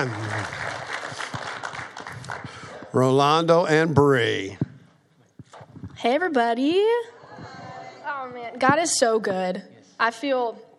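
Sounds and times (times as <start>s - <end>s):
speech: 0.0s - 0.2s, 2.9s - 4.6s, 6.0s - 7.2s, 8.1s - 10.6s
church congregation applauding to welcome visitors: 0.0s - 3.8s.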